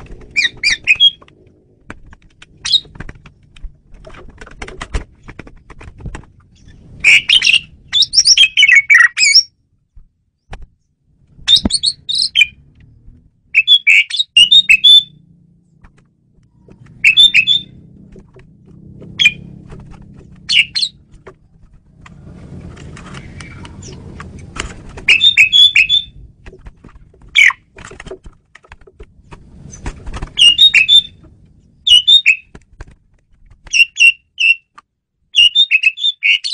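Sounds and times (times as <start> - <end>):
Asian pied starling chirping: 0.3 - 1.2, 2.6 - 3.0, 6.5 - 9.5, 11.4 - 12.6, 13.5 - 15.2, 16.6 - 17.9, 19.1 - 19.5, 20.2 - 21.1, 25.0 - 26.2, 27.3 - 27.7, 29.7 - 31.2, 31.8 - 32.5, 33.7 - 34.7, 35.3 - 36.5.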